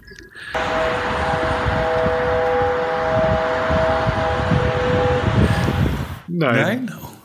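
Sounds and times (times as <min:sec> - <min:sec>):
Daimler car horn: 0:00.6 - 0:06.3
speech: 0:06.4 - 0:07.0.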